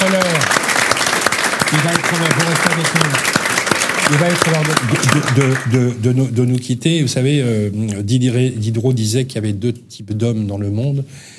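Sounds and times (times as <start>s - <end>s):
crowd clapping: 0.0s - 6.0s
speech: 1.7s - 3.4s, 4.1s - 11.3s.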